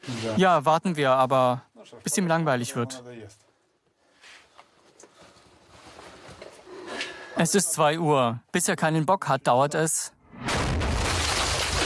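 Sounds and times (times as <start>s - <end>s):
speech: 0.1s - 3.5s, 7.4s - 10.5s
explosive shot hitting nearby: 10.2s - 11.8s
sustained roaring rumble and debris-like noise: 10.4s - 11.8s.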